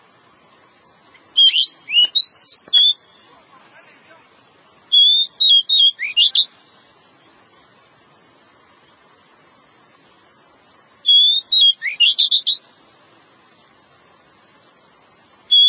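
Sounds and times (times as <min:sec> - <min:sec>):
Java sparrow song of clear slurred whistles and chips: 0:01.4 - 0:03.2, 0:04.9 - 0:06.5, 0:11.1 - 0:12.6.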